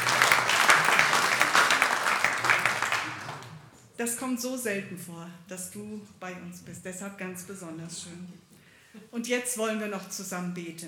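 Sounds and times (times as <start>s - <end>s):
audience applause: 0.0s - 3.7s
speech: 4.0s - 8.5s, 9.1s - 10.8s.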